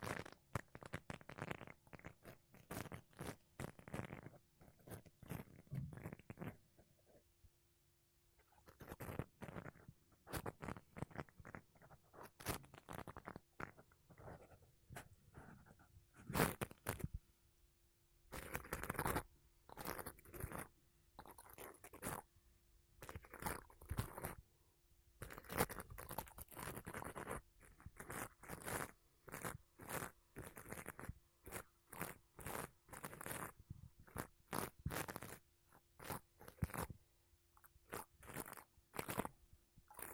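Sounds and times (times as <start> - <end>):
makeup brushes and a sponge rubbing across a microphone: 0.0 - 6.6, 8.6 - 17.2, 18.3 - 22.3, 23.0 - 24.4, 25.2 - 37.0, 37.8 - 40.1.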